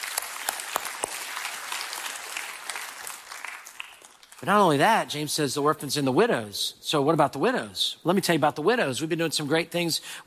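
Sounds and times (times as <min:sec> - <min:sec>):
audience applauding: 0:00.0 - 0:04.4
speech: 0:04.4 - 0:10.2.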